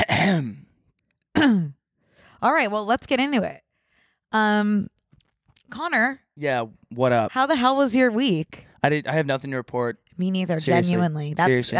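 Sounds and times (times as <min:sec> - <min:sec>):
person clearing throat: 0:00.0 - 0:00.7, 0:01.4 - 0:01.8
speech: 0:01.4 - 0:01.8, 0:02.4 - 0:03.6, 0:04.3 - 0:04.9, 0:05.7 - 0:11.7.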